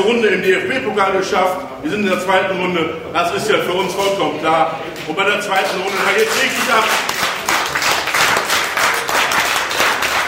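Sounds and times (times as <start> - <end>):
speech: 0.0 - 7.2
applause and cheering at election party: 5.6 - 10.2.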